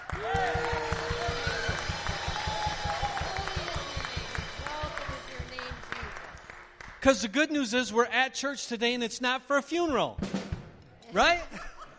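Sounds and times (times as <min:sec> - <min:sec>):
audience clapping: 0:00.0 - 0:07.4
speech: 0:07.0 - 0:10.3, 0:11.1 - 0:11.7
laughter: 0:11.4 - 0:11.9.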